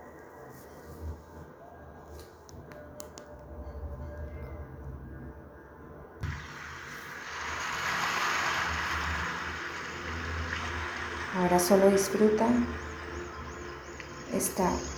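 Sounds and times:
sea waves: 0:06.3 - 0:14.9
speech: 0:11.4 - 0:12.8, 0:14.5 - 0:14.9.

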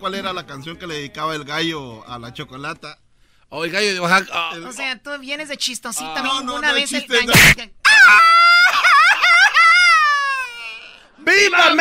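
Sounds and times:
speech: 0:00.0 - 0:08.5, 0:11.2 - 0:11.7
man crying: 0:04.2 - 0:04.8, 0:06.0 - 0:11.7.

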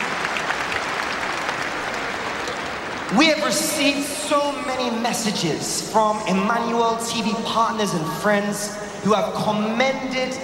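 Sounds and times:
crowd applauding: 0:00.0 - 0:05.4
speech: 0:03.1 - 0:10.4.

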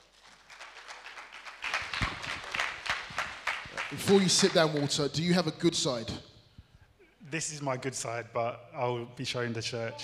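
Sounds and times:
audience applause: 0:00.0 - 0:05.2
speech: 0:03.9 - 0:06.3, 0:07.3 - 0:10.0.

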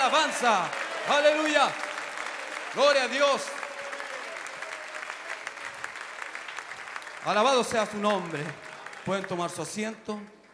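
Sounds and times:
speech: 0:00.0 - 0:01.9, 0:02.8 - 0:03.6, 0:07.2 - 0:10.4
crowd clapping: 0:00.0 - 0:10.5.

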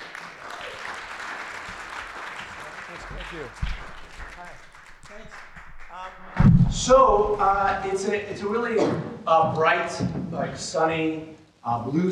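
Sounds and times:
audience clapping to welcome a storyteller: 0:00.0 - 0:07.8
speech: 0:03.2 - 0:03.8, 0:04.4 - 0:12.1.

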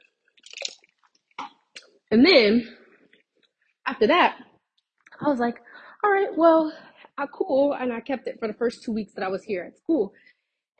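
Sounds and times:
person drinking a sip of water: 0:00.0 - 0:00.9
speech: 0:02.1 - 0:02.8, 0:03.9 - 0:04.5, 0:05.2 - 0:10.7.

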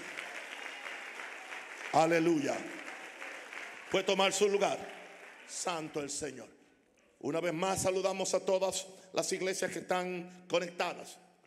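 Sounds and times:
audience applause: 0:00.0 - 0:06.2
speech: 0:02.0 - 0:02.8, 0:03.9 - 0:06.6, 0:07.2 - 0:11.4.

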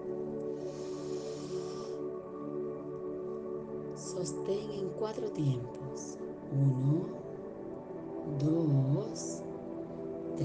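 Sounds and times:
sustained tonal background: 0:00.0 - 0:10.4
slow deep inhale during a guided breathing exercise: 0:00.4 - 0:02.3
speech: 0:04.2 - 0:07.2, 0:08.3 - 0:09.5.

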